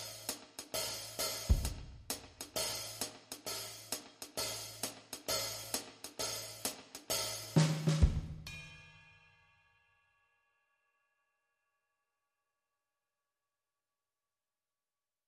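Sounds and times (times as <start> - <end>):
drums: 0.0 - 9.1.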